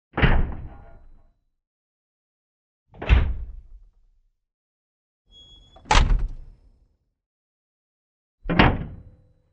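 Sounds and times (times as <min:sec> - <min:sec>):
metal door closing: 0:05.4 - 0:06.6.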